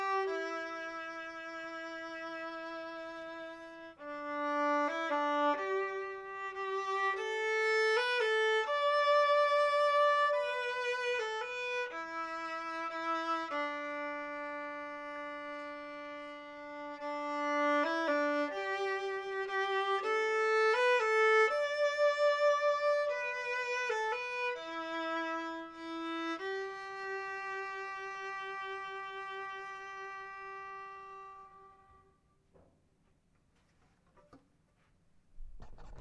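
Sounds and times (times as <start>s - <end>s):
fiddle folk tune: 0.0s - 32.2s.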